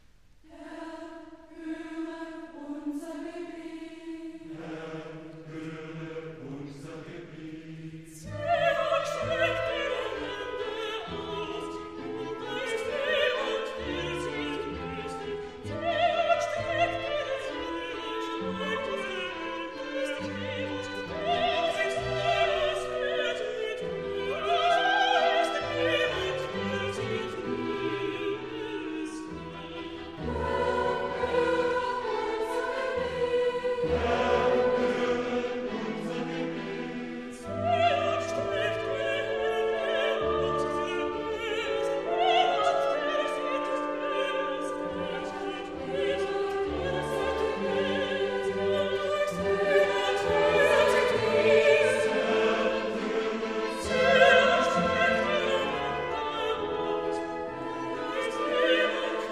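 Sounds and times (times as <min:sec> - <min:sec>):
duet with choir: 0:00.5 - 0:59.3.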